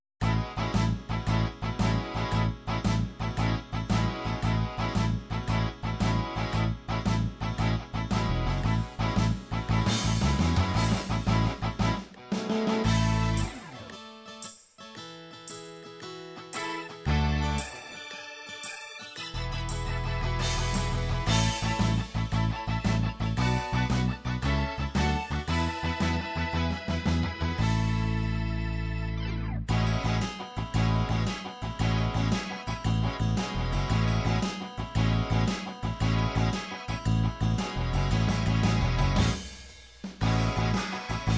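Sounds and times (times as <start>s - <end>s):
rock shuffle ballad MIDI music: 0.2s - 41.3s.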